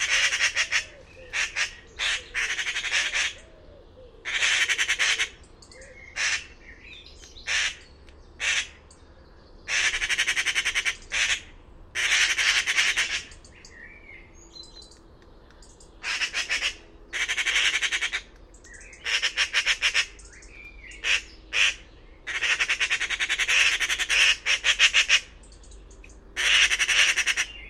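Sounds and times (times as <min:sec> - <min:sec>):
bird squawking: 0:00.0 - 0:03.6, 0:04.2 - 0:08.8, 0:09.7 - 0:13.7, 0:16.0 - 0:25.4, 0:26.4 - 0:27.6.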